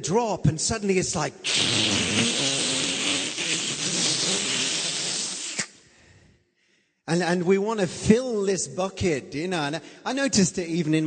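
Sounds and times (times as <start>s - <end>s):
speech: 0.0s - 2.5s, 7.1s - 11.0s
voice mimicking a vacuum cleaner: 1.4s - 5.7s.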